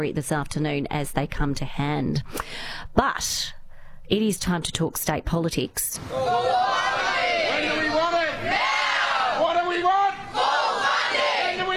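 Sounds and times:
speech: 0.0s - 7.0s
striking Victorian public school teachers and staff chanting and shouting: 6.0s - 11.7s.

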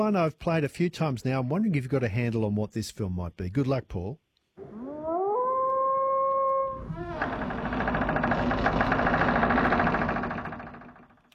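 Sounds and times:
speech: 0.0s - 4.2s
wolf howling: 4.6s - 7.3s
engine rumble: 7.1s - 11.2s.

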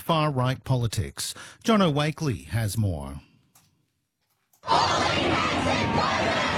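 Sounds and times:
speech: 0.1s - 3.3s, 4.6s - 6.5s
protest crowd chanting slogans: 4.6s - 6.5s.

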